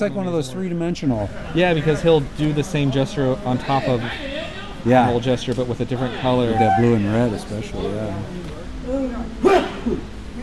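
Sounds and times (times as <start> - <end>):
speech: 0.0 - 10.1
sneeze: 9.4 - 10.0.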